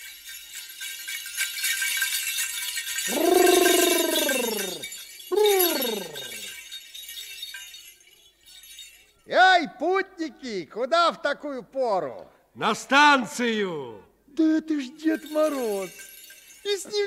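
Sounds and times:
small bells jingling: 0.0s - 10.6s, 14.5s - 17.0s
loud falling harmonic cries: 3.1s - 4.8s
speech: 10.5s - 17.0s.

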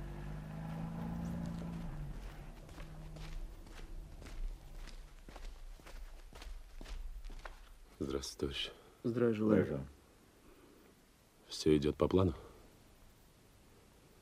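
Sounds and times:
low rumbling hum: 0.0s - 5.8s
soft footsteps crunching: 0.0s - 8.3s
speech: 8.0s - 10.0s, 11.6s - 12.5s.

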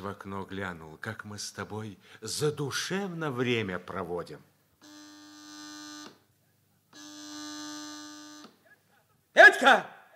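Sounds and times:
speech: 0.0s - 4.5s, 9.6s - 10.0s
telephone buzzing: 4.8s - 6.3s, 6.9s - 8.6s.

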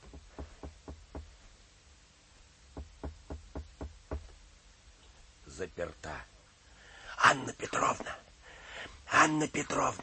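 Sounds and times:
knocking on a door: 0.0s - 1.3s, 2.8s - 4.4s
speech: 5.6s - 6.3s, 7.2s - 8.3s, 9.2s - 10.0s.

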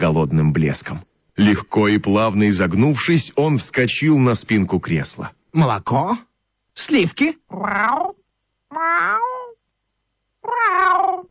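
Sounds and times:
speech: 0.0s - 9.3s
cat meowing: 7.5s - 9.6s, 10.4s - 11.2s.

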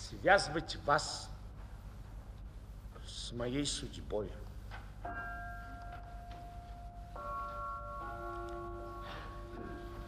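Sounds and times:
speech: 0.1s - 1.3s, 3.3s - 5.4s
church bells ringing: 5.0s - 10.0s.

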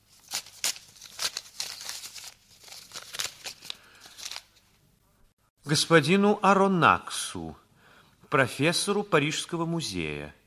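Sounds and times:
paper envelope being torn open: 0.1s - 4.6s
speech: 5.7s - 7.6s, 8.3s - 10.4s.

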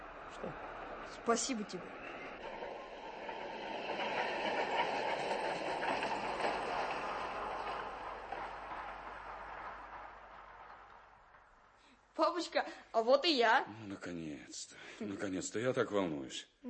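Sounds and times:
tram rumbling on rails: 0.0s - 11.9s
speech: 0.4s - 2.2s, 12.2s - 16.6s.

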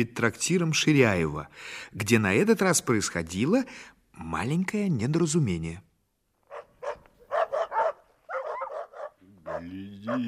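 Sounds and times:
speech: 0.0s - 5.9s, 9.6s - 10.2s
dogs barking: 6.4s - 10.2s.

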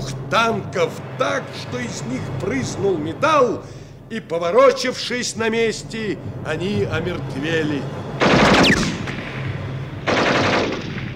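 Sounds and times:
speech: 0.3s - 8.9s
machine gun firing in bursts: 8.2s - 9.0s, 10.1s - 11.1s.

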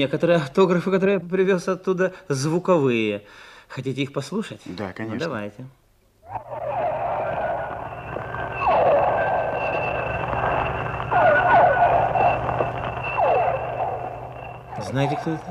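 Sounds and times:
speech: 0.0s - 6.9s, 14.8s - 15.4s
pilot whales whistling underwater while hunting: 6.2s - 15.4s
steady hums: 6.2s - 15.4s.

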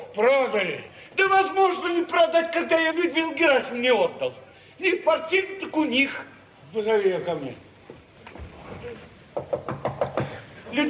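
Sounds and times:
faint noise: 0.0s - 10.8s
speech: 0.2s - 7.6s
knocking on a door in a staged play: 9.3s - 10.4s.

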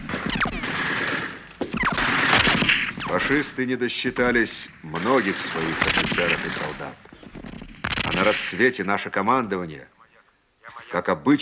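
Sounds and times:
machine gun fire: 0.0s - 3.5s, 4.2s - 7.0s
speech: 3.1s - 7.1s, 8.2s - 10.0s, 10.9s - 11.3s.

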